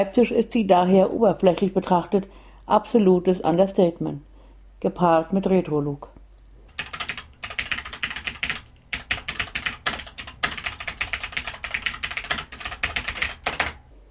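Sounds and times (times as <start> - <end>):
speech: 0.0 - 6.1
typing on a Cherry G80 mechanical keyboard: 6.7 - 13.8.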